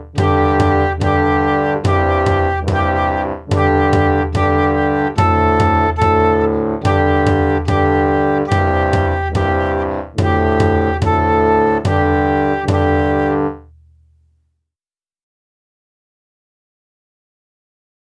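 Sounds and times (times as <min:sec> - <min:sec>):
flute: 0:00.2 - 0:13.6.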